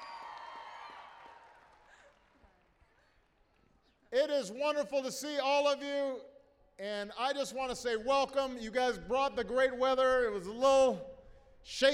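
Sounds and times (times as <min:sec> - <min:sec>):
audience applause and cheering: 0:00.0 - 0:02.4
speech: 0:04.1 - 0:11.9.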